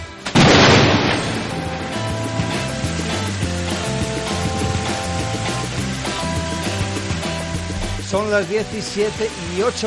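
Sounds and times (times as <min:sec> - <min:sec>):
loud thunderclap: 0:00.3 - 0:05.2
thunder rumbling: 0:00.3 - 0:08.0
music-like tones: 0:00.3 - 0:09.8
speech: 0:08.1 - 0:09.8.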